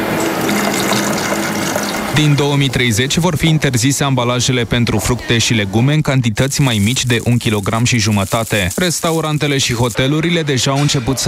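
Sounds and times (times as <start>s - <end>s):
drink pouring into a bottle: 0.2s - 2.2s, 6.6s - 10.0s
speech: 2.2s - 11.2s.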